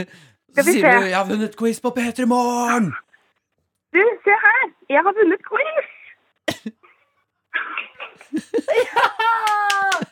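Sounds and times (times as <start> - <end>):
speech: 0.0 - 3.0, 3.9 - 6.0, 7.6 - 10.1
laughter: 8.0 - 10.1
applause: 9.2 - 10.1.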